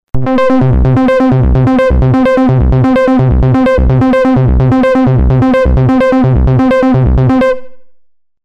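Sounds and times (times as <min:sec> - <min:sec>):
synth bass: 0:00.1 - 0:07.9.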